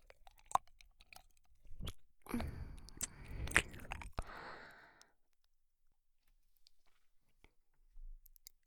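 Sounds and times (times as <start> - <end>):
ASMR ear licking sounds: 0.0 - 4.7.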